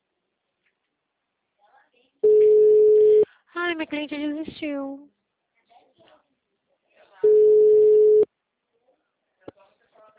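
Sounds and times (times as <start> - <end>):
phone line tone after a dropped call: 2.2 - 3.2, 7.3 - 8.2
speech: 3.6 - 5.2.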